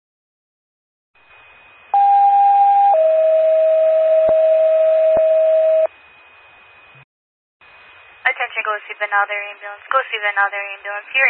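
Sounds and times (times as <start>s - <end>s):
two-tone emergency dispatch pager alert: 2.0s - 5.9s
speech: 8.8s - 11.2s.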